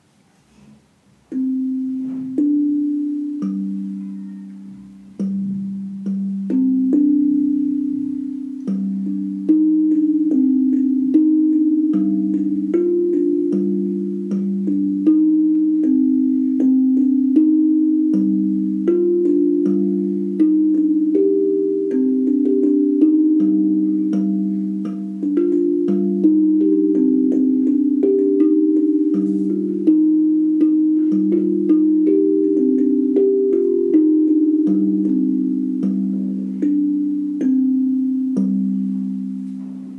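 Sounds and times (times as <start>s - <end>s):
kigonky melodic percussion instrument playing: 1.3s - 39.9s.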